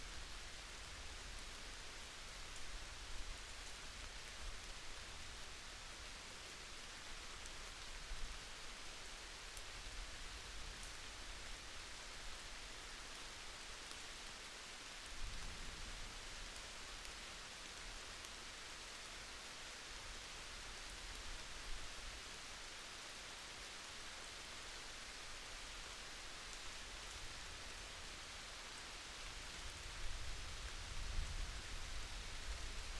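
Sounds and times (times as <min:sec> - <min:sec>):
summer thunderstorm rain under tree canopy: 0:00.0 - 0:32.9.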